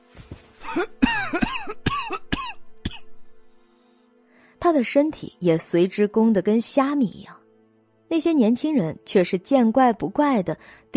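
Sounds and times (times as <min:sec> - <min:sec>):
old man coughing violently: 0:00.6 - 0:03.1
speech: 0:00.7 - 0:01.4, 0:04.7 - 0:07.4, 0:08.1 - 0:10.9.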